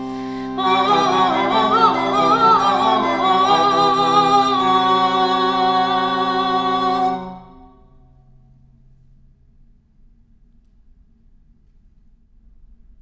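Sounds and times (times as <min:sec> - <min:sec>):
positive organ flute stop in two-voice polyphony: 0:00.0 - 0:07.8
lirone playing a drone: 0:00.0 - 0:08.3.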